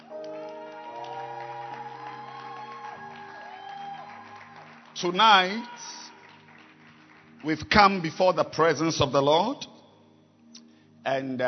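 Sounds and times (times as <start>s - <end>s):
audience hand clapping: 0.0s - 8.2s
speech: 5.0s - 6.0s, 7.4s - 9.7s, 11.0s - 11.4s.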